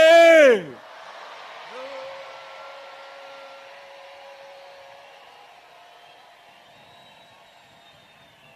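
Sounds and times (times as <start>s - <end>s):
crowd of women and men shouting loudly: 0.0s - 6.0s.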